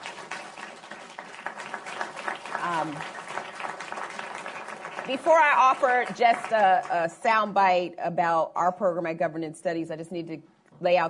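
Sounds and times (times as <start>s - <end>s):
audience round of applause: 0.0s - 6.9s
speech: 2.8s - 3.2s, 5.1s - 11.0s.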